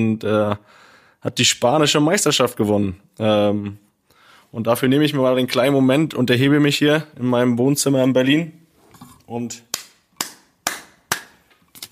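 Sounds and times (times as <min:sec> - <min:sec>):
speech: 0:00.0 - 0:03.8, 0:04.5 - 0:08.6, 0:09.3 - 0:09.7
person clapping: 0:09.7 - 0:11.4.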